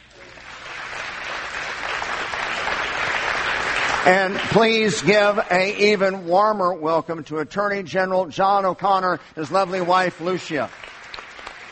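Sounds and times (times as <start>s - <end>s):
audience applause welcoming a co-pastor: 0.0s - 5.7s, 9.5s - 11.7s
speech: 4.0s - 10.9s.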